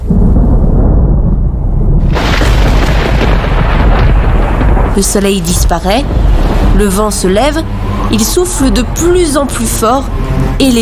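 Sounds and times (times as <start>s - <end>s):
deep thunder rumbling in a storm: 0.0s - 10.8s
harsh crackling roar: 0.1s - 8.7s
speech: 5.0s - 10.8s.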